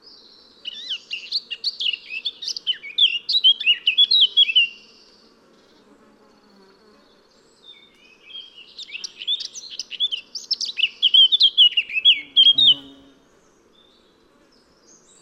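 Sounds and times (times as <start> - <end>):
Eurasian blackcap Sylvia atricapilla singing: 0.7 - 4.9, 7.8 - 13.0.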